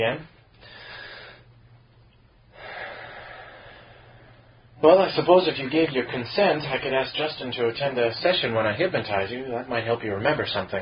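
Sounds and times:
speech: 0:00.0 - 0:00.4, 0:04.8 - 0:10.8
deep breathing during a hypnosis session: 0:00.5 - 0:01.6, 0:02.5 - 0:04.8.

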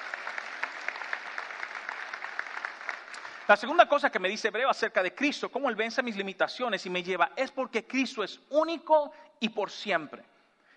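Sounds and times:
audience applauding: 0:00.0 - 0:03.8
speech: 0:03.5 - 0:10.4.

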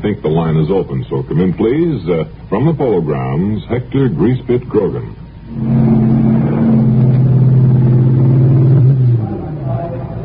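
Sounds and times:
speech: 0:00.0 - 0:06.2
high-powered race cars including ERAs roaring at a mass start at the Polo Grounds: 0:05.5 - 0:10.2.

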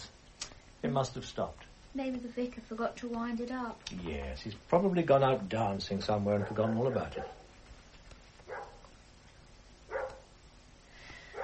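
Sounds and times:
steady low hiss: 0:00.0 - 0:11.4
speech: 0:00.8 - 0:07.4
dog barking: 0:06.4 - 0:07.5, 0:08.4 - 0:08.9, 0:09.9 - 0:10.3.

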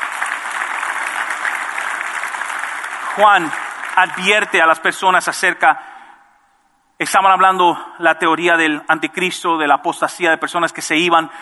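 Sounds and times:
audience applause: 0:00.0 - 0:05.2
speech: 0:03.2 - 0:05.9, 0:07.0 - 0:11.4.

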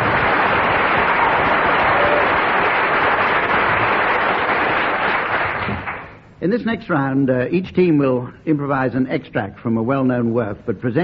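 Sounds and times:
crowd applause: 0:00.0 - 0:06.2
speech: 0:06.4 - 0:11.0.

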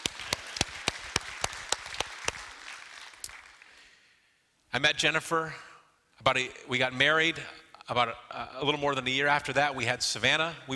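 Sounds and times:
audience clapping: 0:00.0 - 0:04.1
speech: 0:04.7 - 0:10.7.

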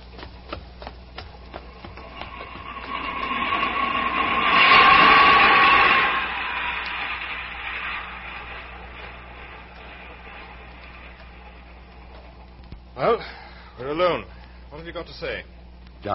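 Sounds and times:
underground train wheel clicks in a tube station: 0:00.0 - 0:12.8
underground train metallic whine: 0:01.4 - 0:14.3
underground train roar and rumble in a tube station: 0:01.6 - 0:12.3
speech: 0:14.9 - 0:16.1.

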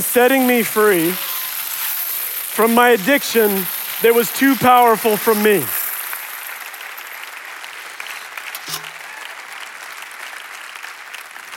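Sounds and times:
speech: 0:00.0 - 0:01.3, 0:02.6 - 0:05.8
audience hand clapping: 0:04.8 - 0:11.5.

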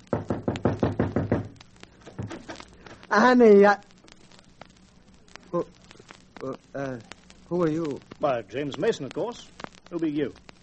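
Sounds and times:
knocking on a cottage door: 0:00.1 - 0:01.6
speech: 0:03.1 - 0:03.9, 0:05.5 - 0:05.8, 0:06.4 - 0:10.4.

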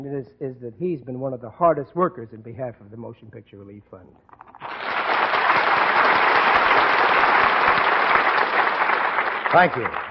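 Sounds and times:
speech: 0:00.0 - 0:05.0, 0:09.5 - 0:10.1
audience applause: 0:04.5 - 0:10.1.

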